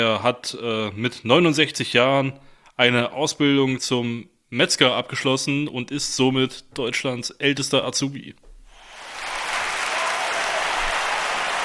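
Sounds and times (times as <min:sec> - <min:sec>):
speech: 0:00.0 - 0:08.4
audience applause: 0:08.8 - 0:11.6.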